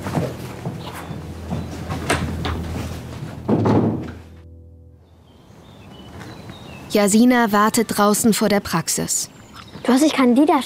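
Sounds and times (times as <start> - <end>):
door being closed: 1.5 - 2.8, 3.4 - 4.3
speech: 6.9 - 10.6.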